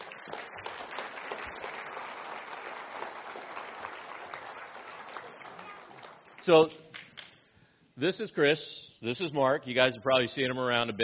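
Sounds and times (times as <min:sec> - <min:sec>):
round of applause: 0:00.0 - 0:06.6
speech: 0:06.4 - 0:06.8, 0:08.0 - 0:11.0.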